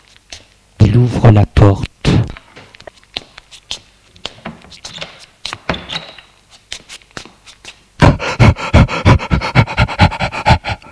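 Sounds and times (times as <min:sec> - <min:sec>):
speech: 0:01.0 - 0:01.9
labored breathing of a struggling person: 0:08.0 - 0:10.8.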